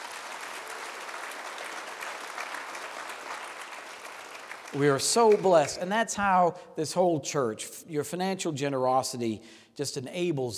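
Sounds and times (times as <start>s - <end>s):
audience clapping: 0.0s - 5.9s
speech: 4.7s - 10.5s.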